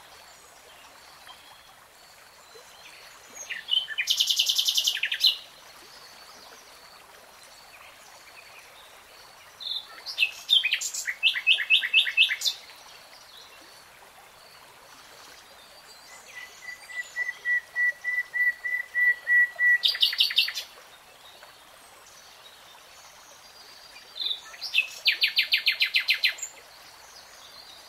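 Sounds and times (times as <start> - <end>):
nightingale song: 2.6 - 5.5, 9.6 - 12.7, 15.8 - 20.8, 23.8 - 27.8.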